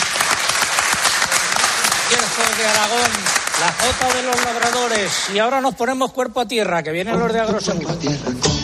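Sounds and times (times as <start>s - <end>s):
audience applause: 0.0s - 5.4s
speech: 2.1s - 8.5s.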